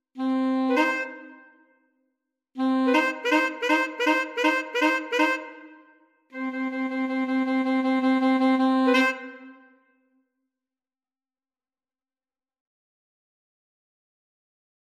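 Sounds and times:
alto sax trio: 0.2 - 1.3, 2.6 - 5.6, 6.4 - 9.6.

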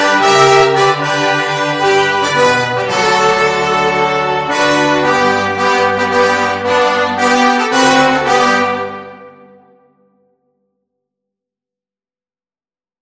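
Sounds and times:
flexible mixed ensemble of 4 players: 0.0 - 10.0.

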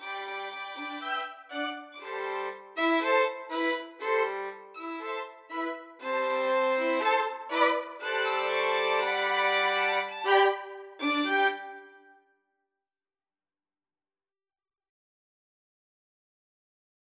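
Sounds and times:
violin ensemble: 0.0 - 12.1.

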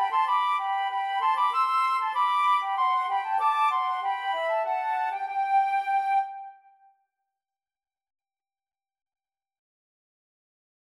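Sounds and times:
flute trio playing a rejouissance: 0.0 - 6.6.

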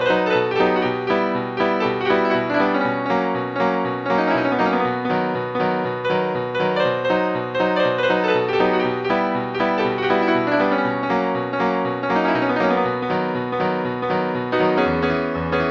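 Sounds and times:
piano piece: 0.0 - 15.6.

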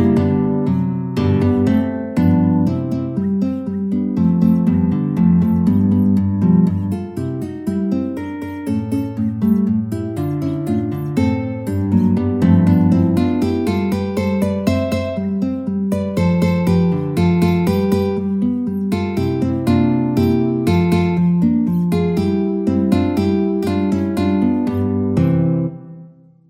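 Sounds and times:
guitar playing contradanzas: 0.0 - 26.4.

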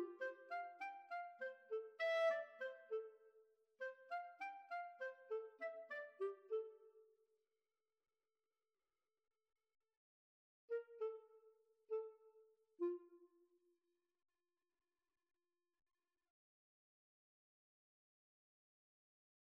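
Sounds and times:
flute and clarinet duet: 0.0 - 3.2, 3.8 - 6.8, 10.7 - 11.3, 11.9 - 13.0.

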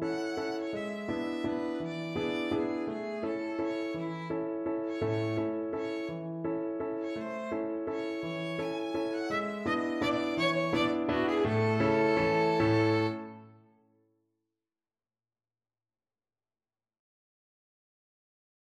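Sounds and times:
violin playing: 0.0 - 6.3, 7.0 - 13.6.

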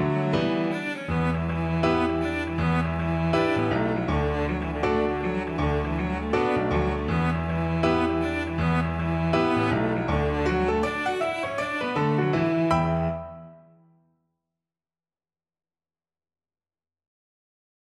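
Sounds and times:
piano trio: 0.0 - 13.7.

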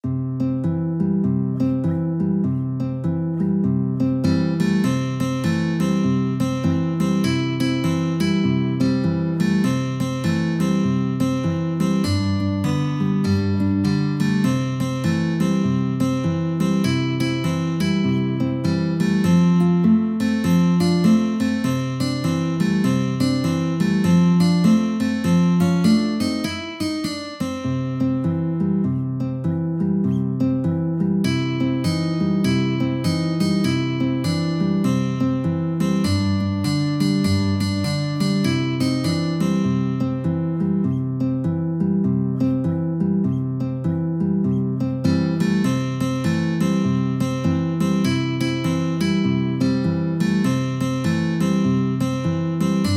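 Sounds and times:
guitar duet: 0.0 - 52.9.

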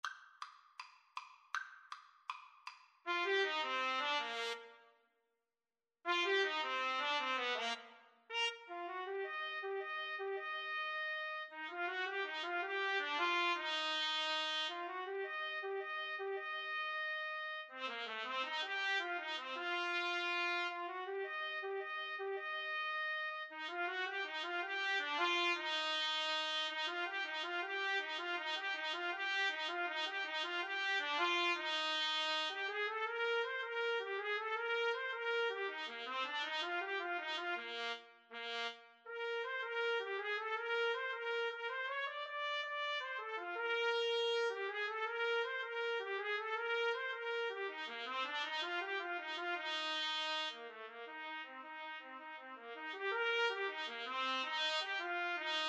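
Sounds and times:
trumpet duet: 3.1 - 4.8, 6.1 - 55.6.

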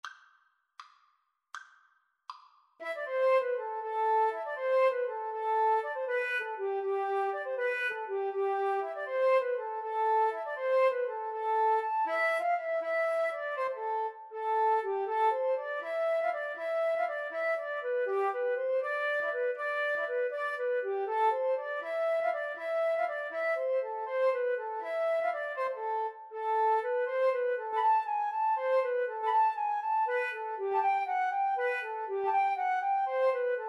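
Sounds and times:
two flutes playing karaoke backing: 2.8 - 33.6.

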